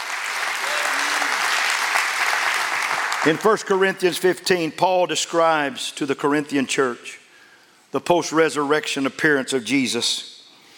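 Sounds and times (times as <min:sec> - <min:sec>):
audience clapping hands in dense steady applause: 0:00.0 - 0:03.8
speech: 0:03.2 - 0:07.2, 0:07.9 - 0:10.3.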